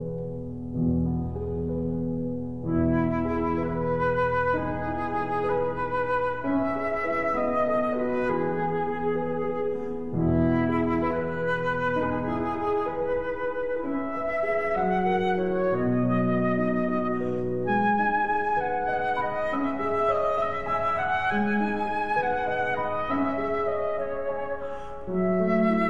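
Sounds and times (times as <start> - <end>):
flute and piano lullaby: 0.0 - 25.8.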